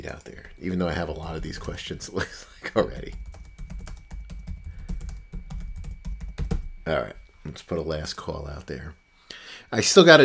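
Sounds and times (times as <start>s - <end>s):
speech: 0.0s - 3.2s, 6.9s - 10.2s
typing on a computer keyboard: 2.8s - 6.7s.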